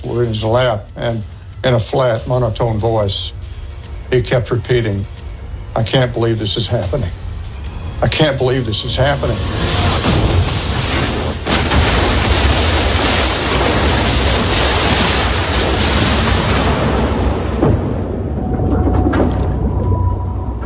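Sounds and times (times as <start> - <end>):
speech: 0.1 - 3.4, 4.1 - 5.2, 5.8 - 7.2, 8.0 - 9.8
bomber crashing into ocean wave: 8.1 - 20.6
roar of rushing water and impact: 9.2 - 20.6.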